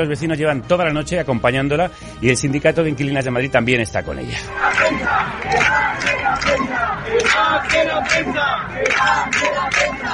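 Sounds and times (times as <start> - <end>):
speech: 0.0 - 10.1
crowd of protesters shouting: 4.5 - 10.1.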